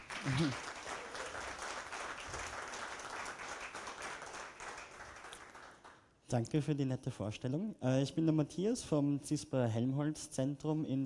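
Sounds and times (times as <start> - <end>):
applause: 0.0 - 6.1
speech: 0.2 - 0.7, 6.3 - 11.0.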